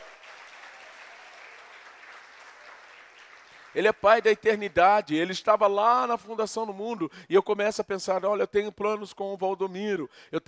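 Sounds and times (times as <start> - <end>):
crowd applauding: 0.0 - 4.4
speech: 3.7 - 10.4.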